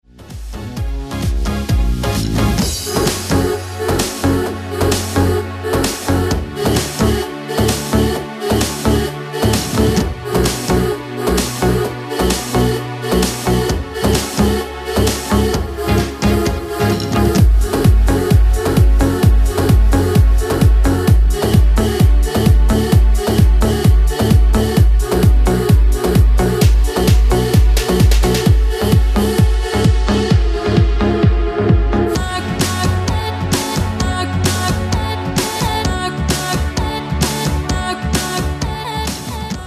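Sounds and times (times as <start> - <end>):
dance music: 0.0 - 39.6.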